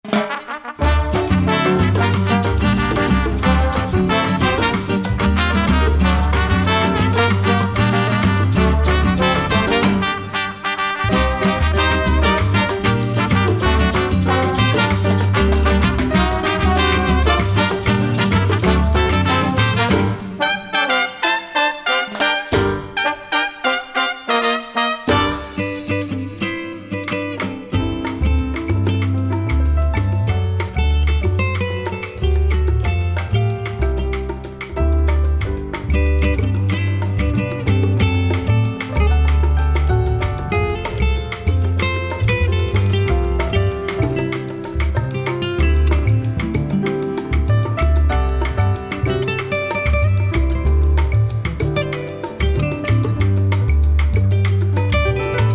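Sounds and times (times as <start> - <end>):
urban Latin music: 0.0 - 55.5.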